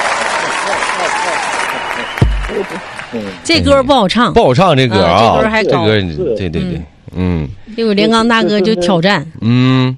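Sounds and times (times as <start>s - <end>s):
cheering: 0.0s - 3.2s
applause: 0.0s - 3.5s
speech: 2.7s - 9.9s.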